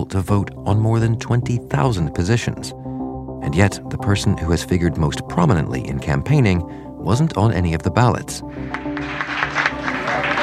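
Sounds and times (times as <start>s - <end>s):
speech: 0.0s - 2.8s, 3.4s - 9.5s
crowd applauding at polling station: 8.6s - 10.4s.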